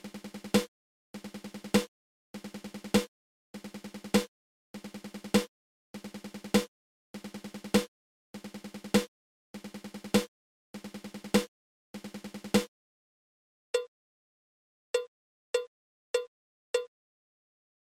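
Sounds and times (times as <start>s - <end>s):
seven stroke roll triple on drum: 0.0s - 12.7s.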